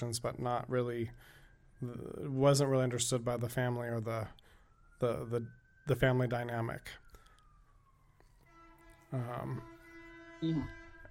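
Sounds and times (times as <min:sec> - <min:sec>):
speech: 0:00.0 - 0:07.0, 0:09.1 - 0:09.7, 0:10.4 - 0:10.8
ambulance siren wailing: 0:00.0 - 0:11.0.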